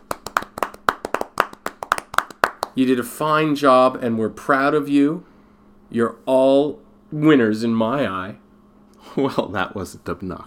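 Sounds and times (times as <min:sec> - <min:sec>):
polite golf clap hand claps: 0:00.0 - 0:02.8
speech: 0:02.8 - 0:05.3, 0:05.9 - 0:08.4, 0:09.0 - 0:10.4.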